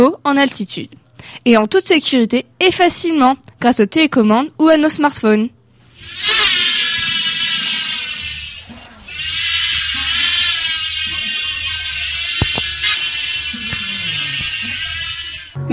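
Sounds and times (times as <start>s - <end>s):
speech: 0.0s - 6.4s
drone buzzing: 5.9s - 15.6s.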